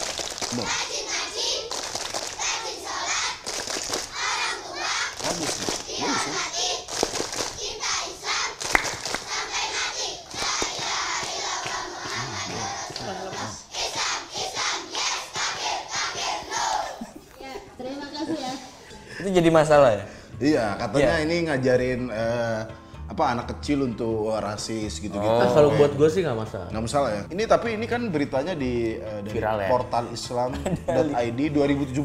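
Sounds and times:
hand claps: 0.0 - 0.9, 1.6 - 2.6, 3.3 - 4.2, 5.1 - 7.6, 8.5 - 9.5, 10.2 - 13.6
children chanting in call-and-response: 0.4 - 3.5, 4.1 - 8.6, 9.2 - 17.1
speech: 0.5 - 0.9, 19.3 - 32.0
laughter: 12.1 - 13.6, 29.8 - 31.2.

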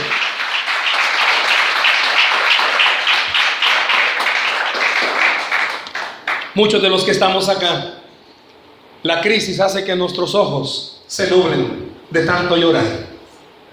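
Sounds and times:
audience applause: 0.0 - 6.5
speech: 6.6 - 8.0, 9.0 - 13.0.

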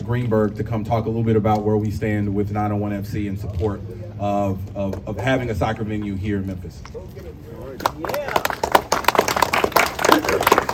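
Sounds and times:
speech: 0.1 - 8.6
audience applause: 7.8 - 10.7.

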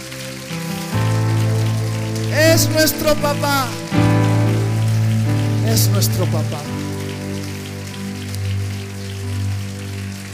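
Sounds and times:
audience applause: 0.0 - 10.3
speech: 2.6 - 4.0, 5.7 - 6.8.

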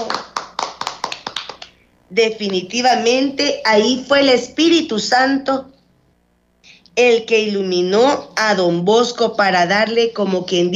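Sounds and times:
audience applause: 0.0 - 1.7
speech: 2.1 - 5.7, 7.0 - 10.7.

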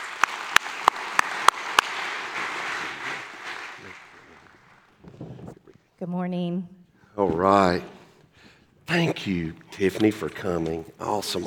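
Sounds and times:
sharp separate claps: 0.0 - 4.9
audience applause welcoming a speaker to the stage: 0.0 - 5.0
speech: 6.0 - 8.0, 8.9 - 11.4.

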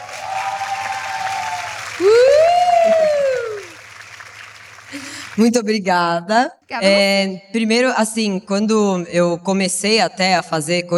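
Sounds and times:
applause: 0.0 - 5.6
speech: 5.4 - 10.9.

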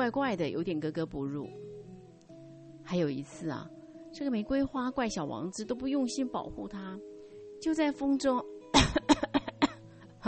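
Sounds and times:
speech: 0.0 - 1.8, 2.9 - 9.0
faint breath: 7.2 - 7.6
person making forced theatrical coughs: 8.8 - 9.8.

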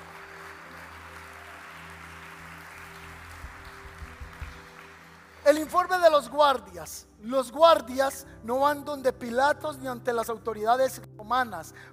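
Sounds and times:
audience applause: 0.0 - 5.8
speech: 5.5 - 11.9.

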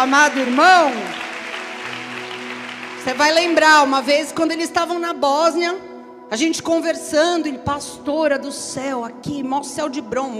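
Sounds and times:
speech: 0.0 - 1.2, 3.0 - 10.3
audience applause: 0.0 - 4.1.

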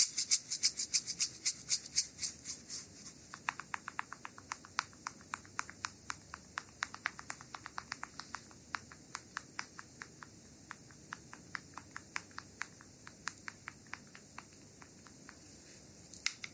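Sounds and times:
soft steady hiss: 0.0 - 16.5
heated bamboo sticks tapping in a full body massage: 3.3 - 15.4.

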